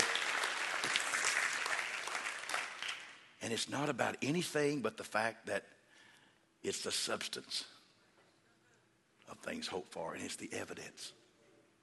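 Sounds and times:
audience clapping hands: 0.0 - 3.4
speech: 3.4 - 5.8, 6.6 - 7.8, 9.3 - 11.2.

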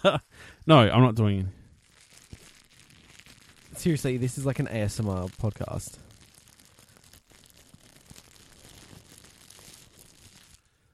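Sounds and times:
speech: 0.0 - 1.6, 3.8 - 6.1
Pokemon cards crinkling and rustling during an unboxing: 1.6 - 10.7.

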